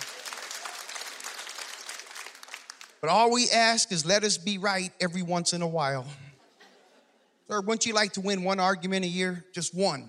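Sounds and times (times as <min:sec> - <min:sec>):
audience clapping: 0:00.0 - 0:03.2
speech: 0:03.0 - 0:06.2, 0:07.5 - 0:10.0
laughter: 0:06.3 - 0:07.5.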